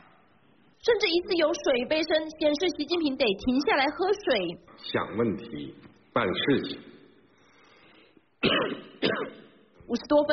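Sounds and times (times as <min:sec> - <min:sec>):
speech: 0:00.8 - 0:06.9, 0:08.4 - 0:10.3
man coughing during a speech: 0:08.4 - 0:09.7.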